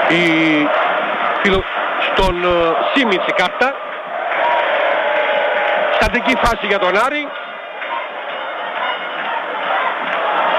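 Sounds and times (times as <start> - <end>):
football fans chanting slogans in stadium: 0.0 - 5.0, 7.3 - 10.5
speech: 0.1 - 0.8, 1.4 - 3.8, 6.0 - 7.4.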